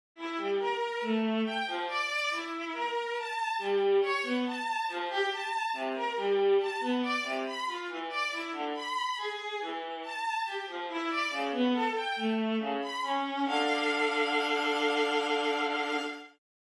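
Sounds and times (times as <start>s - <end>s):
trio melody: 0.2s - 16.4s.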